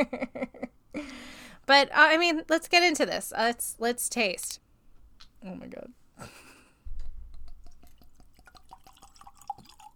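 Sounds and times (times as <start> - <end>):
speech: 0.0 - 0.3, 1.7 - 4.6, 5.4 - 6.4
liquor pouring into a glass: 7.6 - 9.9.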